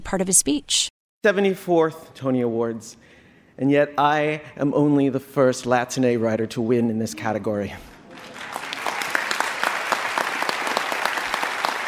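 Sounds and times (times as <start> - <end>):
speech: 0.1 - 7.9
audience applause at an awards ceremony: 8.1 - 11.8.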